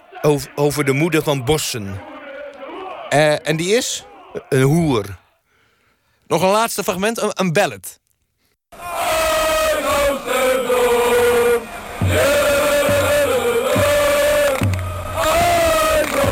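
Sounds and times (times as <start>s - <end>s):
football supporters singing a chant: 0.0s - 5.4s, 8.8s - 16.2s
speech: 0.2s - 2.2s, 3.1s - 5.2s, 6.3s - 8.0s
steady low thumps marking the beat: 11.9s - 16.2s.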